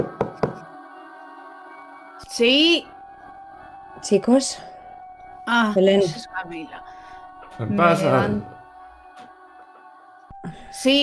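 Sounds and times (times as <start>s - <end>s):
knocking on a bedroom door: 0.0s - 0.6s
speech: 2.2s - 2.9s, 4.0s - 4.7s, 5.5s - 6.9s, 7.6s - 8.6s, 10.4s - 11.0s.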